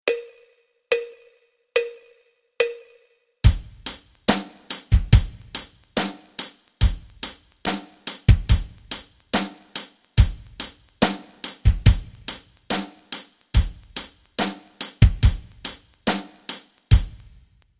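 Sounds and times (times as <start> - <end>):
rock rhythms: 3.4 - 17.5.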